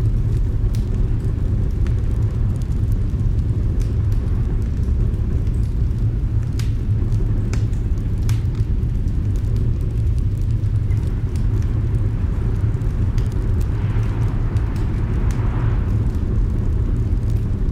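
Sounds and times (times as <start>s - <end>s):
roaring fireplace in a cosy cabin: 0.0s - 17.7s
soft hissing flare: 9.2s - 17.6s.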